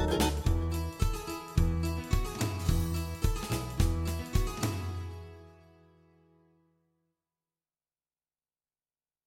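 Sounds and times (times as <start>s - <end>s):
music: 0.0s - 7.2s.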